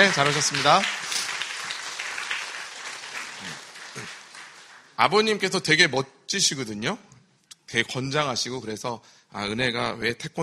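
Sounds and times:
speech: 0.0s - 1.1s, 3.4s - 4.2s, 5.0s - 7.1s, 7.7s - 10.4s
church audience applause: 0.0s - 5.0s.

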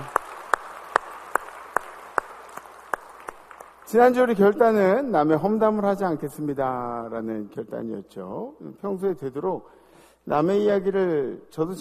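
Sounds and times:
audience clapping in unison: 0.0s - 4.6s
speech: 3.9s - 11.7s.

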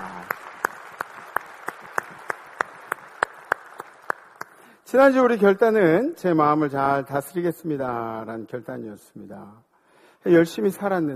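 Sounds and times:
audience applause: 0.0s - 4.7s
speech: 4.9s - 11.1s.

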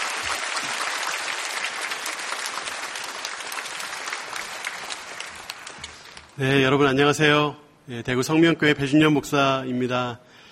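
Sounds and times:
audience applause welcoming a speaker: 0.0s - 6.4s
speech: 6.4s - 10.4s.

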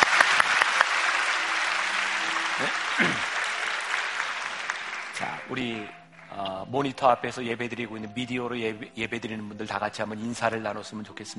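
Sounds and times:
crowd applauding: 0.0s - 6.5s
speech: 5.5s - 11.3s.

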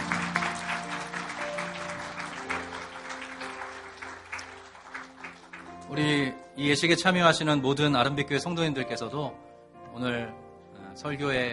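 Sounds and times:
audience applause: 0.0s - 6.0s
speech: 5.9s - 10.4s, 11.0s - 11.5s.

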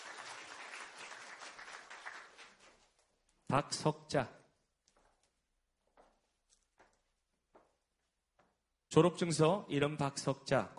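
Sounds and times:
crowd applauding: 0.0s - 2.9s
speech: 3.5s - 4.4s, 9.0s - 10.7s.

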